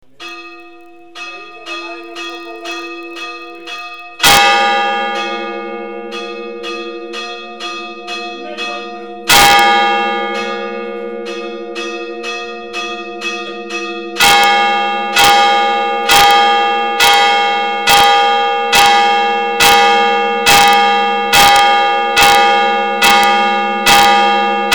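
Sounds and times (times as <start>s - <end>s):
bell: 0.0s - 24.7s.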